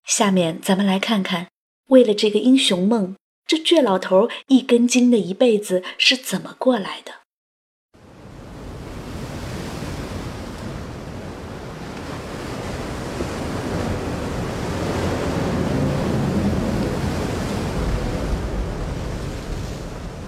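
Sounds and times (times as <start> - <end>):
speech: 0.1 - 7.2
heavy waves roaring on the Huai River: 8.0 - 20.2
storm wind on the Huai River: 8.0 - 20.2.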